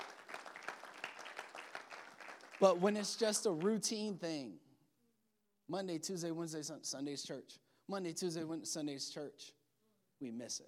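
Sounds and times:
crowd applauding: 0:00.0 - 0:03.7
speech: 0:02.6 - 0:04.6, 0:05.7 - 0:09.6, 0:10.2 - 0:10.6.

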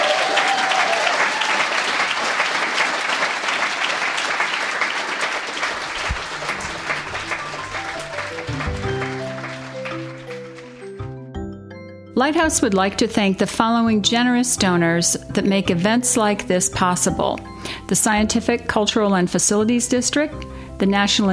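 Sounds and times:
audience applause: 0:00.0 - 0:11.3
low sustained musical notes: 0:05.8 - 0:18.6
speech: 0:12.3 - 0:21.3.

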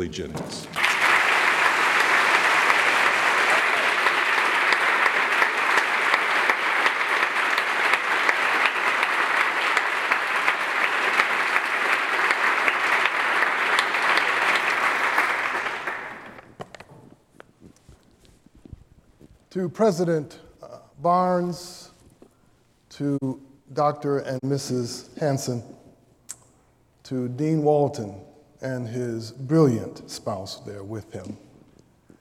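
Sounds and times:
speech: 0:00.0 - 0:00.8, 0:19.6 - 0:20.4, 0:21.0 - 0:21.8, 0:23.0 - 0:25.8, 0:27.1 - 0:31.5
audience applause welcoming a guest speaker to a lecture: 0:00.6 - 0:16.6.

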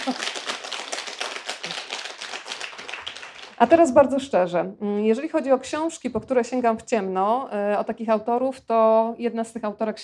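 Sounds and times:
audience applause: 0:00.0 - 0:03.6
speech: 0:03.6 - 0:10.0.

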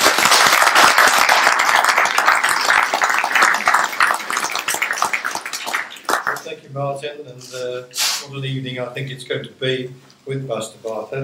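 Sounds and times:
audience round of applause: 0:00.0 - 0:06.5
speech: 0:06.8 - 0:11.2.

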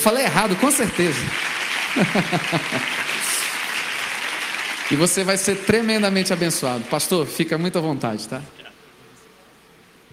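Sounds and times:
speech: 0:00.0 - 0:03.1, 0:04.9 - 0:08.6
audience applause: 0:00.0 - 0:07.4
laughter: 0:01.8 - 0:03.6.

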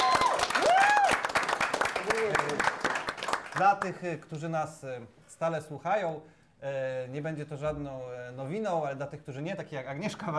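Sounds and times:
applause: 0:00.0 - 0:04.0
speech: 0:03.6 - 0:10.3.

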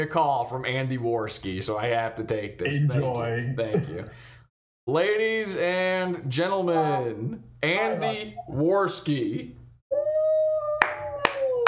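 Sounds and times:
speech: 0:00.0 - 0:04.3, 0:04.9 - 0:09.6
hand clapping applause: 0:10.8 - 0:11.6.

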